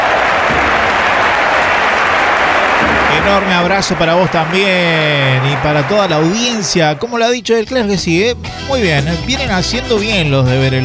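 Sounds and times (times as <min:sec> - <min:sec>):
loud steady audience applause: 0:00.0 - 0:07.2
speech: 0:03.3 - 0:10.8.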